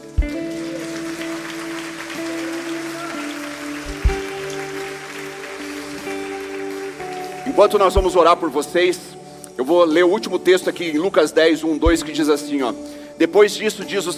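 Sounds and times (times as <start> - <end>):
audience applause: 0.0 - 8.0
speech: 7.6 - 14.1.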